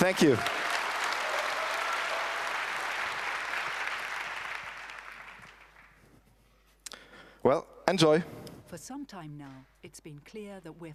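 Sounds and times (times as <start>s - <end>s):
speech: 0.0s - 0.6s, 7.4s - 10.9s
audience applause: 0.0s - 6.0s.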